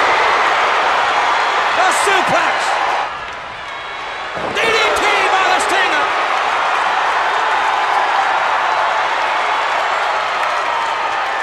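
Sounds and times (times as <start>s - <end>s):
wrestling arena crowd cheering: 0.0s - 11.4s
speech: 2.0s - 2.6s.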